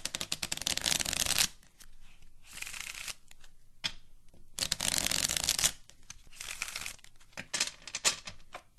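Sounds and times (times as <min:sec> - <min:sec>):
playing cards riffle-shuffled: 0:00.0 - 0:03.6, 0:04.6 - 0:07.4.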